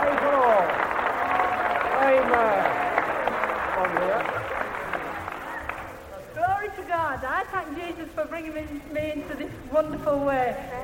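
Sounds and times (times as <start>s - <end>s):
audience clapping: 0.0s - 6.7s
speech: 7.9s - 10.8s.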